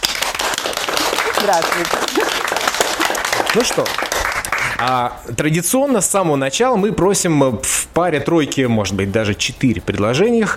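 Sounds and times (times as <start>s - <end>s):
audience applause at a public conversation event: 0.0s - 5.1s
speech: 1.4s - 2.2s, 3.6s - 10.5s.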